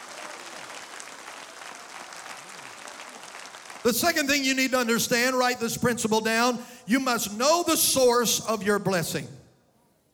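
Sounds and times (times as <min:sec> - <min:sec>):
audience clapping hands: 0:00.0 - 0:04.8
speech: 0:03.8 - 0:09.4.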